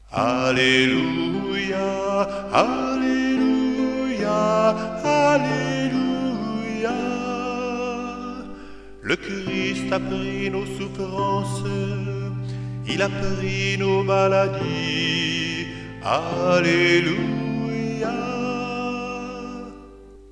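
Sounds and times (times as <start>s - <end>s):
paschal alleluia chant: 0.0s - 20.3s.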